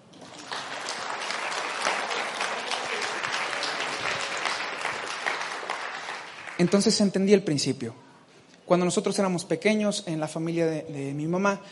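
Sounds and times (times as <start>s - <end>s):
audience applause: 0.0s - 7.0s
speech: 6.6s - 8.1s, 8.7s - 11.6s.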